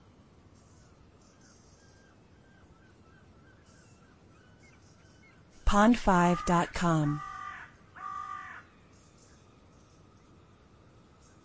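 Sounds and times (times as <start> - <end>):
speech: 5.7 - 7.3
bird cawing: 7.2 - 8.7.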